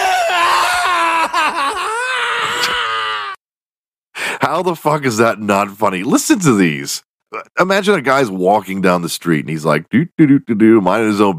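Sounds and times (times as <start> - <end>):
video game character agonized scream: 0.0 - 3.4
speech: 4.5 - 11.3.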